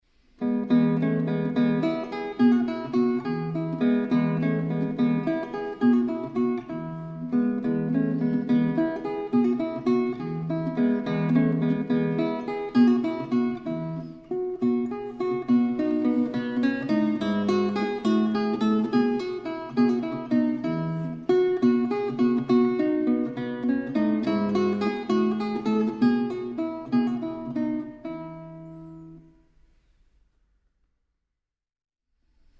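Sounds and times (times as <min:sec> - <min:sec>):
guitar: 0:00.2 - 0:30.0.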